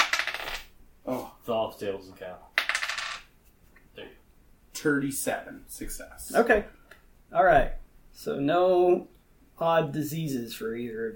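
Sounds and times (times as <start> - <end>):
dice clattering: 0.0 - 0.7, 2.6 - 3.3
speech: 1.0 - 2.6, 4.8 - 11.1.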